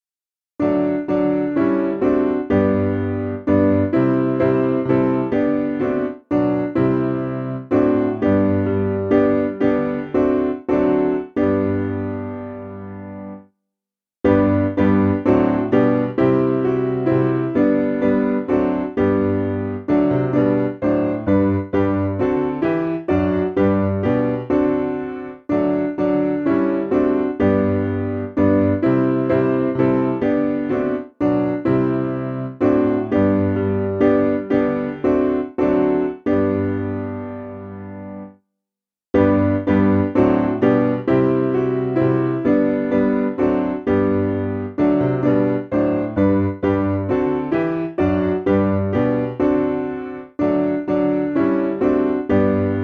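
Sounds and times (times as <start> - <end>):
piano: 0.6 - 13.6, 14.2 - 38.4, 39.1 - 52.8.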